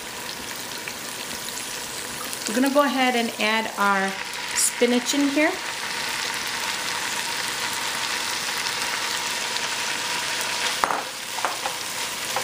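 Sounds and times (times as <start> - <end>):
ginger and garlic frying in a pan: 0.0 - 12.4
speech: 2.5 - 5.7.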